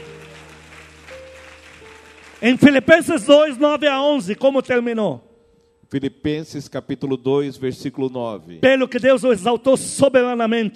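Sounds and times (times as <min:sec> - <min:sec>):
audience applauding: 0:00.0 - 0:04.3
speech: 0:02.4 - 0:05.3, 0:05.9 - 0:10.7.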